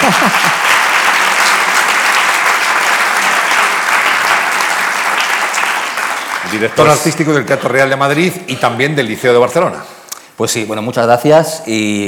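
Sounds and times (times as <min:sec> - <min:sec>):
laughter: 0:00.0 - 0:00.8
audience applause: 0:00.0 - 0:07.4
speech: 0:06.6 - 0:12.0.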